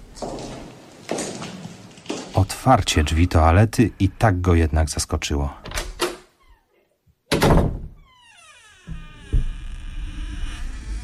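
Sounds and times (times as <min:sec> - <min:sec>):
footsteps in elegant men's shoes: 0:00.0 - 0:02.4
speech: 0:02.6 - 0:05.7.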